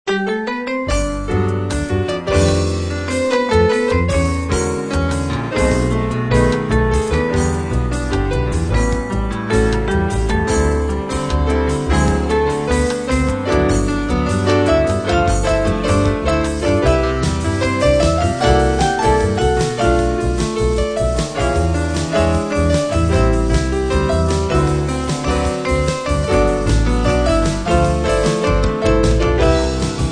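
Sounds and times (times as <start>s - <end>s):
jazz music: 0.1s - 30.1s.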